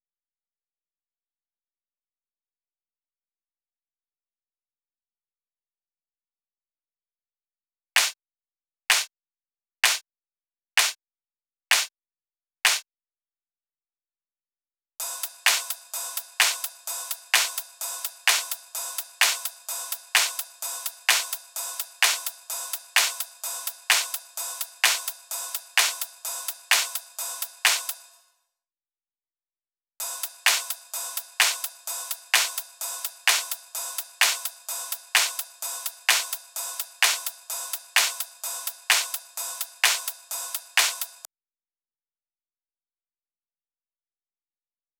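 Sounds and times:
128 BPM clap loop: 8.0 - 8.2, 8.9 - 9.1, 9.8 - 10.0, 10.8 - 11.0, 11.7 - 11.9, 12.7 - 12.9, 15.0 - 28.2, 30.0 - 41.3.

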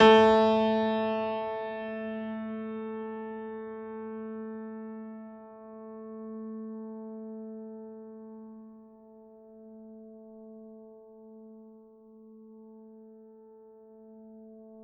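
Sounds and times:
classical piano: 0.0 - 5.2.

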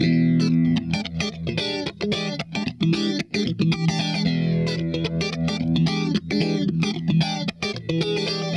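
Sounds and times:
grinding funk guitar: 0.0 - 8.5.

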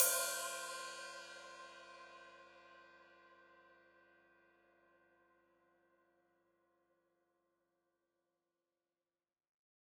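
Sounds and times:
open hi-hat: 0.0 - 1.6.

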